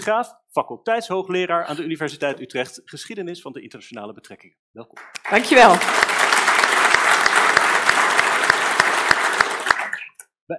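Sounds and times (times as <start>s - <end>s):
speech: 0.0s - 6.5s
applause: 5.0s - 10.2s.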